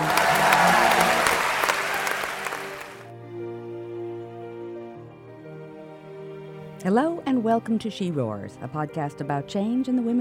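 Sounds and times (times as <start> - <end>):
large crowd cheering, roaring and clapping: 0.0 - 3.1
speech: 6.9 - 10.1.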